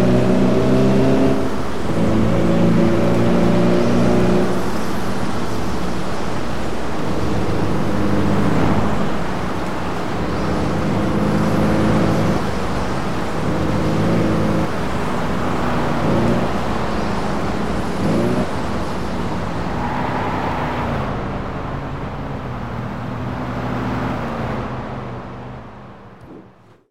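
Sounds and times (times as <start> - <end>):
Chrysler Firepower engine: 0.0 - 26.8.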